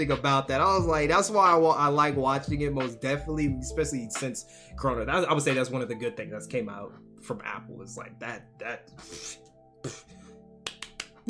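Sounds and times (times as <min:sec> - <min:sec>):
speech: 0:00.0 - 0:10.2
hand claps: 0:10.6 - 0:11.2.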